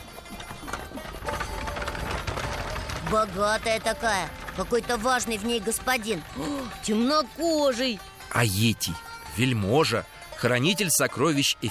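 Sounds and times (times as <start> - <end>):
chariot rolling rumble: 0.0 - 8.4
hooves of a horse-drawn chariot clattering along a road: 0.0 - 11.2
speech: 3.1 - 11.6.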